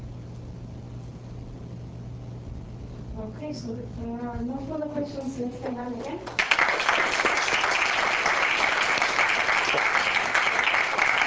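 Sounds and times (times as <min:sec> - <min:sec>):
speech: 0:03.2 - 0:06.5
crowd clapping: 0:06.2 - 0:11.2.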